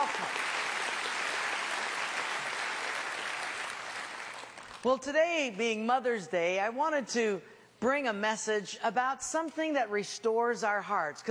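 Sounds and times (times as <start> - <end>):
audience clapping: 0.0 - 4.9
speech: 4.8 - 11.2.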